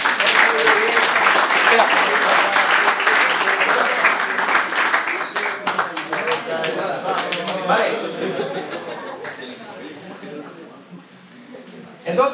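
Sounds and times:
audience applause during a talk: 0:00.0 - 0:08.0
laughter: 0:00.2 - 0:10.7.

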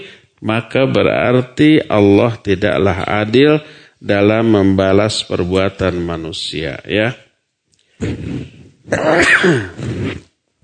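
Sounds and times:
speech: 0:00.0 - 0:07.2, 0:08.0 - 0:10.3
person sneezing: 0:08.0 - 0:10.6.

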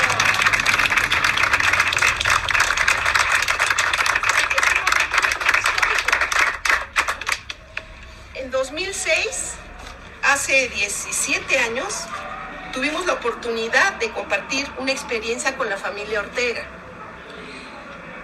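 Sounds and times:
applause at the opening of an artisan and cultural workshop: 0:00.0 - 0:08.0
speech: 0:10.5 - 0:12.1, 0:12.8 - 0:16.8.

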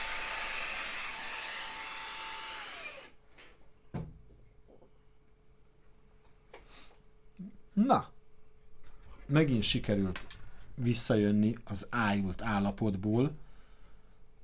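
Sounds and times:
handheld vacuum cleaner motor whirring in a video game: 0:00.0 - 0:03.2
speech: 0:07.8 - 0:08.1, 0:09.3 - 0:13.4.

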